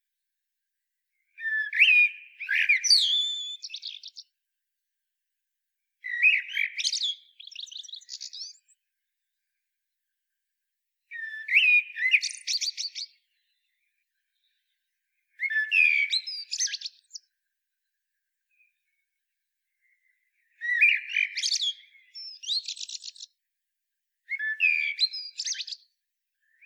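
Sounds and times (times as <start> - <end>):
common blackbird singing: 1.4 - 4.3, 6.0 - 8.8, 11.1 - 13.8, 15.4 - 17.2, 20.4 - 23.3, 24.3 - 25.8.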